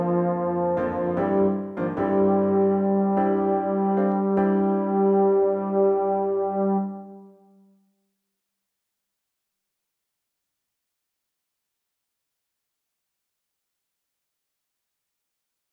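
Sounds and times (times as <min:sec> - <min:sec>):
euphonium fanfare: 0:00.0 - 0:07.4.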